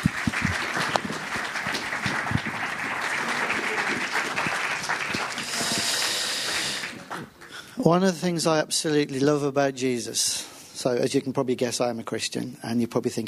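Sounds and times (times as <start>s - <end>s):
audience applause: 0.0s - 7.7s
speech: 7.9s - 13.2s.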